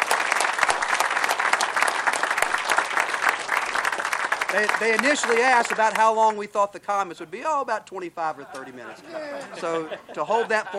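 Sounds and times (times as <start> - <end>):
crowd applause: 0.0 - 6.2
speech: 4.5 - 10.7
laughter: 8.4 - 10.7.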